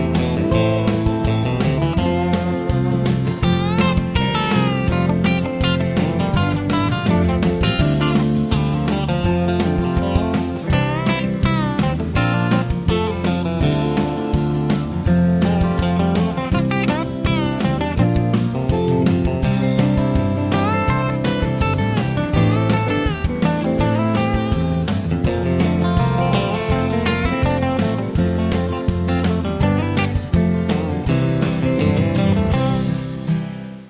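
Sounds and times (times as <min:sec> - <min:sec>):
on hold jazz music: 0:00.0 - 0:33.8.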